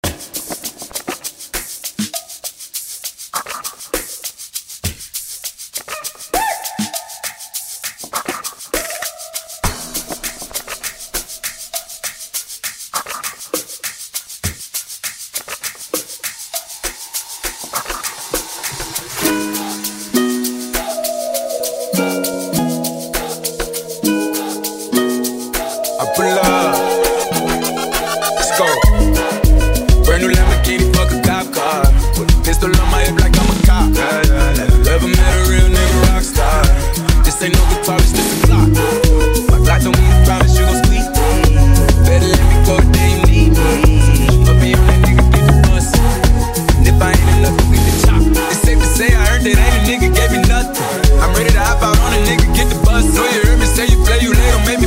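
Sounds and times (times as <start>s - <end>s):
amapiano music: 19.2s - 54.8s.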